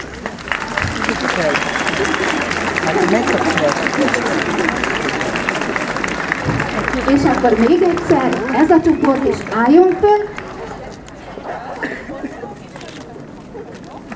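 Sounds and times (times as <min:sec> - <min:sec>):
audience applause: 0:00.0 - 0:12.1
laughter: 0:00.2 - 0:14.1
speech: 0:01.1 - 0:05.1, 0:06.4 - 0:10.4.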